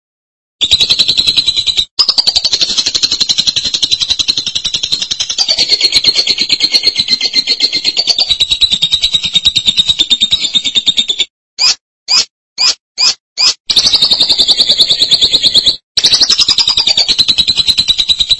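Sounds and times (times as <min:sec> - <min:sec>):
lovebird song: 0:00.6 - 0:18.3.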